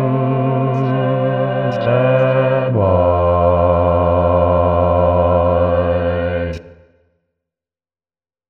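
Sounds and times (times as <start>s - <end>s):
bass: 0.0s - 6.6s.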